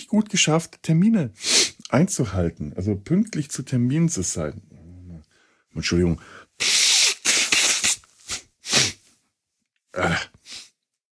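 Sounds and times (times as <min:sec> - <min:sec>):
speech: 0:00.1 - 0:04.8, 0:05.7 - 0:06.7, 0:10.0 - 0:10.3
nose blowing into a sweater: 0:01.4 - 0:01.8, 0:06.6 - 0:09.2, 0:10.0 - 0:10.8.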